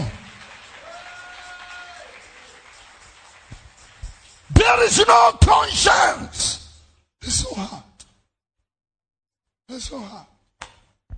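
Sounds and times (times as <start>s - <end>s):
audience clapping hands: 0.0s - 6.0s
speech: 4.7s - 6.6s, 7.2s - 7.8s, 9.7s - 10.3s.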